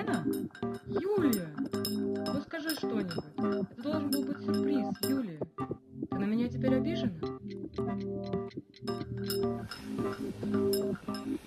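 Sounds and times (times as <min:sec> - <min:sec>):
speech: 0:00.0 - 0:01.6
mellow sustained musical tones: 0:00.0 - 0:05.2, 0:06.8 - 0:11.4
alarm clock ticking: 0:00.0 - 0:05.8, 0:06.7 - 0:11.4.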